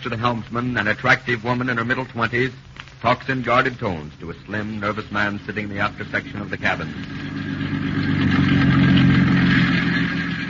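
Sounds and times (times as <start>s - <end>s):
speech: 0.0s - 7.4s
motorboat engine running: 6.0s - 10.4s.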